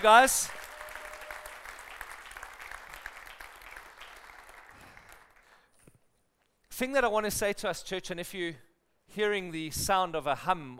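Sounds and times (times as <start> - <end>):
speech: 0.0 - 0.6, 6.8 - 10.7
audience applause: 0.0 - 5.6.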